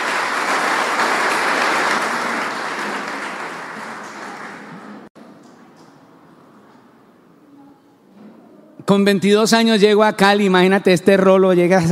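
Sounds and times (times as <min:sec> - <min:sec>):
audience applauding: 0:00.0 - 0:05.1
speech: 0:08.9 - 0:11.9.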